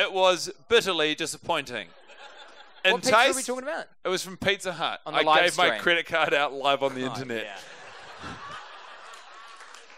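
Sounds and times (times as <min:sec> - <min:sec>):
speech: 0:00.0 - 0:02.0, 0:02.8 - 0:08.4
laughter: 0:01.8 - 0:03.6, 0:06.8 - 0:09.9
applause: 0:08.9 - 0:09.9.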